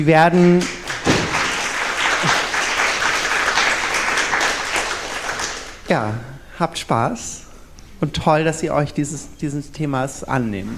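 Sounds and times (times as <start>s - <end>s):
speech: 0.0s - 0.8s, 5.9s - 7.4s, 8.0s - 10.7s
audience applause: 0.6s - 5.8s.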